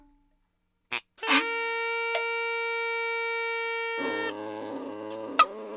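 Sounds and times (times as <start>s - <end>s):
acoustic music: 1.2s - 5.6s.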